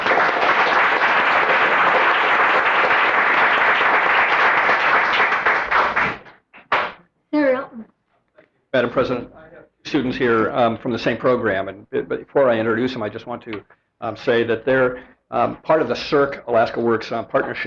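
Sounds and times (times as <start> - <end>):
applause in a Senate chamber in Juneau: 0.0 - 7.0
speech: 8.8 - 17.6.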